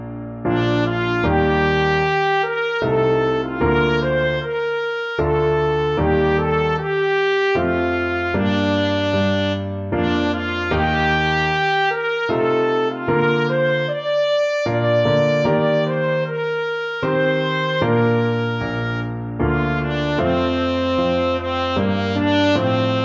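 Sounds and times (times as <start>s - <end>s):
trumpet: 0.4s - 23.0s.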